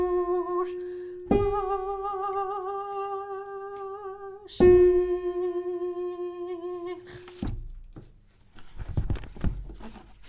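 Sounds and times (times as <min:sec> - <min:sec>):
soprano singing: 0:00.0 - 0:07.4.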